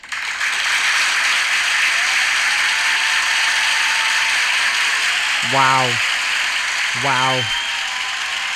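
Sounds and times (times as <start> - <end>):
dense steady crowd applause: 0.0 - 8.5
speech: 5.5 - 6.1, 6.9 - 7.6.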